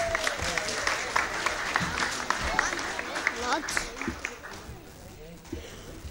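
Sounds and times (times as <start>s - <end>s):
round of applause: 0.0s - 5.4s.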